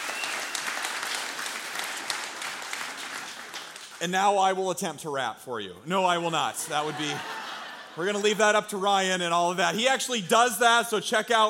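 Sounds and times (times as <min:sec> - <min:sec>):
audience applause for worship team: 0:00.0 - 0:04.0
speech: 0:04.0 - 0:07.4, 0:08.0 - 0:11.4
laughter: 0:06.6 - 0:08.6.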